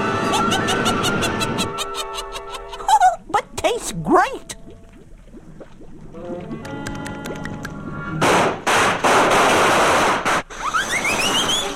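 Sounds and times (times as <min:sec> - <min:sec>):
laughter: 0:00.2 - 0:03.2
potion explosion: 0:08.2 - 0:11.6.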